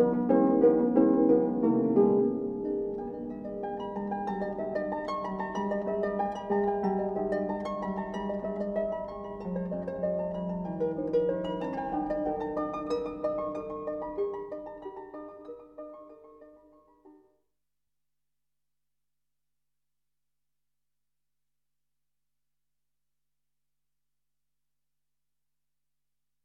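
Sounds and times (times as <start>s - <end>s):
harp: 0.0s - 17.3s.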